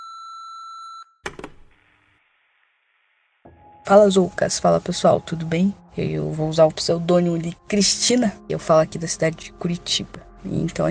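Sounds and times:
voicemail beep: 0.0 - 1.2
speech: 3.9 - 10.8.

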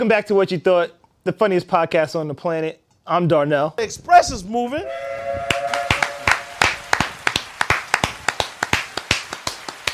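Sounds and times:
speech: 0.0 - 5.5
applause and clapping: 5.5 - 9.9.

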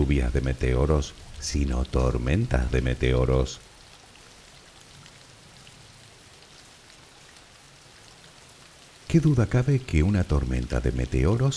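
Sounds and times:
speech: 0.0 - 3.7, 9.1 - 11.5
steady rain pattering on a surface: 0.0 - 11.5.

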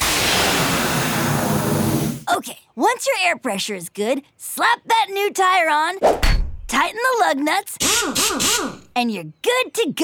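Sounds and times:
blow dryer blowing air: 0.0 - 2.3
speech: 2.4 - 10.0.

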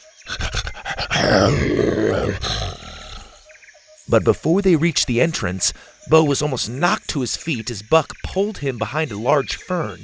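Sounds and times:
pet dinosaur panting excitedly: 0.3 - 3.4
speech: 1.3 - 2.6, 4.1 - 10.0.

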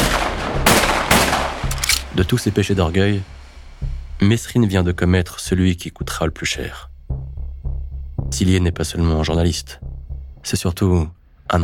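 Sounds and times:
gunshots: 0.0 - 2.1
speech: 2.2 - 7.3, 8.3 - 9.8, 10.4 - 11.6.

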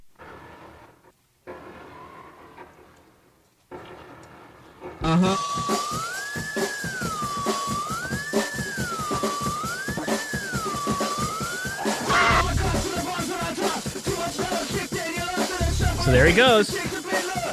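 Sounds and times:
siren-like wail: 5.0 - 12.8
speech: 5.1 - 7.0, 16.1 - 16.9
rap song cover with drum beat: 5.6 - 17.5.

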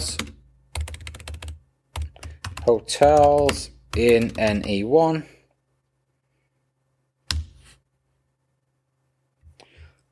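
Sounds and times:
typing a search into a maps site on a computer keyboard: 0.0 - 4.8
speech: 2.6 - 5.3.

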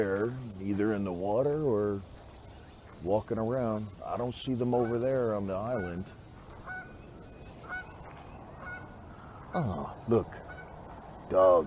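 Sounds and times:
speech: 0.0 - 2.2, 3.0 - 6.2, 9.5 - 10.4, 11.3 - 11.6
geese honking at a pond: 4.0 - 9.8, 10.4 - 10.8.

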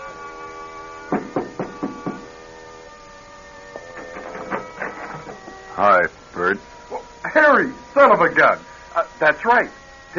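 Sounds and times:
steady low electrical hum: 0.0 - 10.1
knocking on a door: 1.1 - 2.3
speech: 5.8 - 6.7, 7.4 - 10.1.

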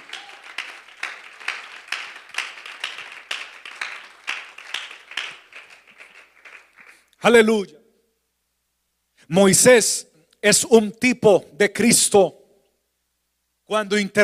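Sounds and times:
audience clapping in a steady rhythmic beat: 0.0 - 7.2
speech: 7.2 - 7.8, 9.3 - 12.4, 13.7 - 14.2.

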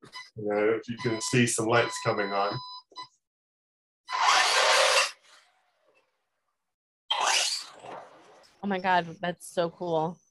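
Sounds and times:
speech: 0.4 - 2.7, 8.7 - 10.2
remote-controlled toy car starting up and moving: 4.1 - 6.1, 7.1 - 8.2.

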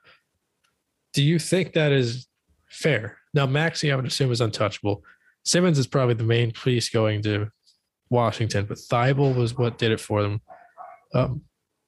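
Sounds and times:
speech: 1.2 - 11.5
dogs barking: 9.2 - 11.2.

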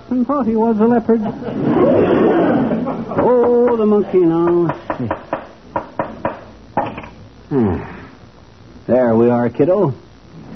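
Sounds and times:
speech: 0.1 - 5.2, 7.5 - 8.0, 8.9 - 10.0
hammering nails into a wooden frame: 3.4 - 7.0.

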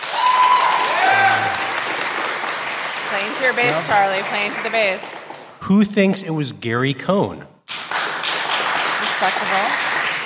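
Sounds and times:
cheering voices: 0.0 - 2.0, 3.1 - 4.8
live studio audience applause during a political panel: 0.0 - 6.3, 7.7 - 10.2
speech: 3.1 - 7.5, 9.2 - 9.9.

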